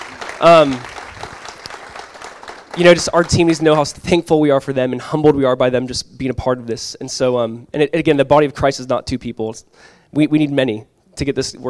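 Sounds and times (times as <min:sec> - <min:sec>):
audience clapping: 0:00.0 - 0:04.0
speech: 0:00.4 - 0:00.9, 0:02.8 - 0:11.6.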